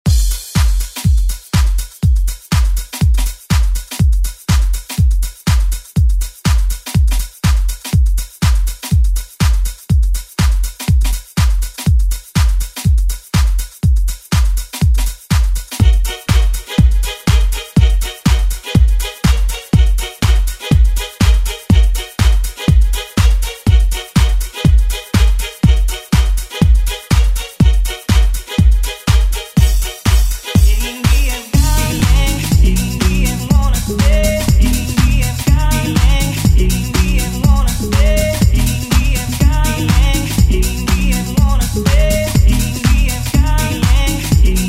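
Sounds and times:
90s drum beat: 0.0 - 44.6.

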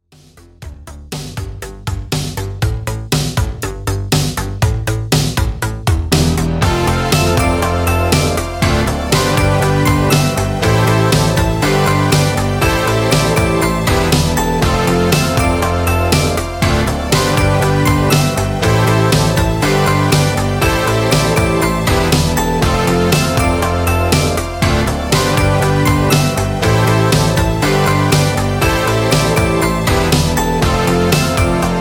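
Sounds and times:
intro music: 0.2 - 31.8.

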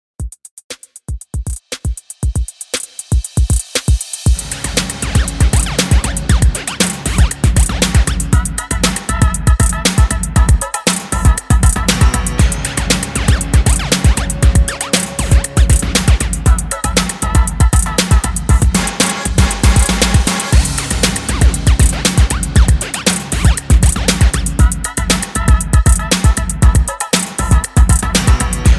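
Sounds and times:
90s music at 118 BPM: 0.2 - 28.7.

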